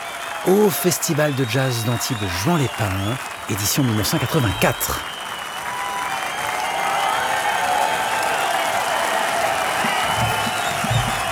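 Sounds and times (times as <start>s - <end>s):
jazz festival audience in Antibes Juan-les-Pins applauding and cheering for an encore: 0.0s - 11.2s
speech: 0.4s - 5.2s
low thumps: 9.9s - 11.2s.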